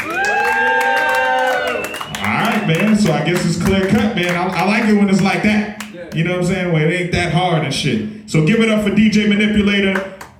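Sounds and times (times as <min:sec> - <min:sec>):
live crowd cheering and shouting: 0:00.0 - 0:03.0
speech: 0:02.7 - 0:10.2.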